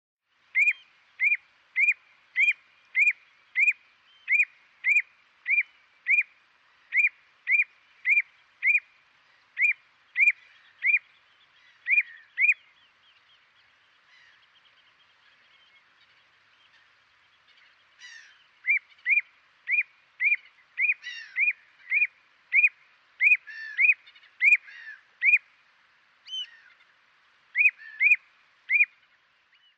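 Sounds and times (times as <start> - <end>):
bird whistled calls: 0.5 - 6.3, 6.9 - 8.9, 9.6 - 12.7, 18.0 - 25.4, 27.6 - 29.0.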